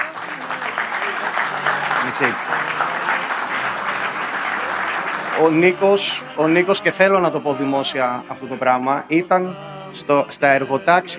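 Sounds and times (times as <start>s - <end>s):
audience applause: 0.0s - 7.7s
speech: 2.1s - 2.7s, 5.4s - 11.1s.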